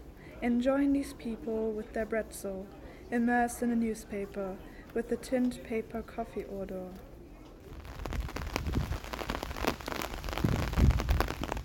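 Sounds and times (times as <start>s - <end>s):
speech: 0.4s - 7.1s
low rumbling undertone: 7.7s - 11.6s
raindrops pattering on hats and shop surfaces: 7.7s - 11.6s.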